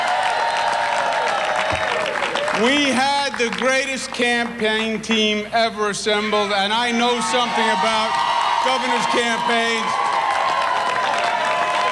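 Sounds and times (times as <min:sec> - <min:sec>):
audience applause for Congresswoman Nydia Velasquez at a campaign event: 0:00.0 - 0:04.2, 0:07.3 - 0:11.8
speech: 0:02.6 - 0:10.0.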